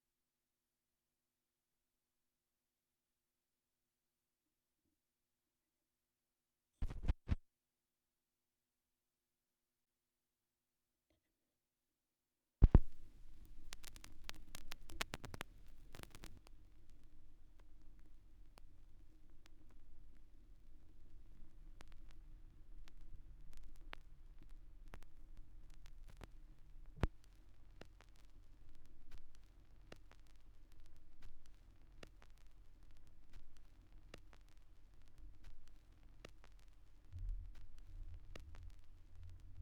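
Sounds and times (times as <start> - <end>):
vinyl record noise: 6.8 - 7.4, 12.6 - 39.5.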